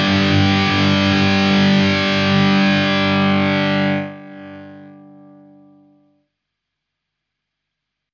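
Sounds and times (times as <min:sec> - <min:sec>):
high gain distortion: 0:00.0 - 0:06.2.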